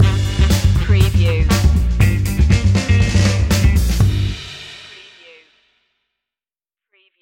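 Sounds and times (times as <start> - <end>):
funky music stinger: 0.0 - 4.6.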